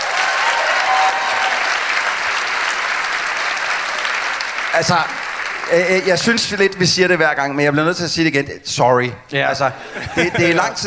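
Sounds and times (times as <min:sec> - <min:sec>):
crowd clapping: 0:00.0 - 0:07.2
speech: 0:04.8 - 0:10.8
laughter: 0:09.7 - 0:10.8.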